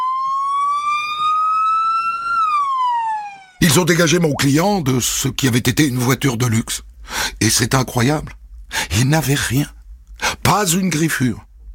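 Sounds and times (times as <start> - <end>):
emergency vehicle siren: 0.0 - 3.6
speech: 3.6 - 9.8, 10.5 - 11.5.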